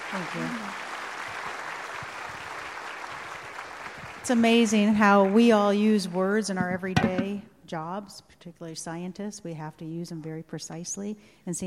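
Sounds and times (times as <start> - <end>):
audience applause: 0.0 - 5.4
speech: 0.1 - 0.8, 4.3 - 11.6.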